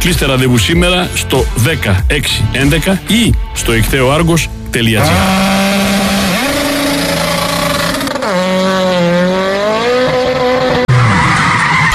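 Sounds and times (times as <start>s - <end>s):
speech: 0.0s - 5.6s
car skidding with a blown tyre, tyres screeching: 4.9s - 11.9s.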